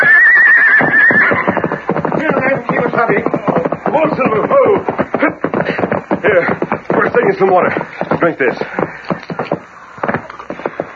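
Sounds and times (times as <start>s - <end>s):
horse neighing: 0.0s - 1.9s
horse hooves: 0.0s - 10.9s
speech: 7.4s - 9.1s.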